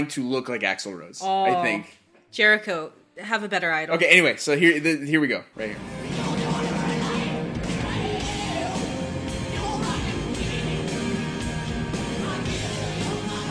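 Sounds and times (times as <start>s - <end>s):
speech: 0.0s - 6.0s
person singing: 1.4s - 1.9s, 6.0s - 11.4s, 12.0s - 13.4s
distorted guitars: 5.6s - 13.4s
rock song chorus from a live concert recording: 5.8s - 13.4s.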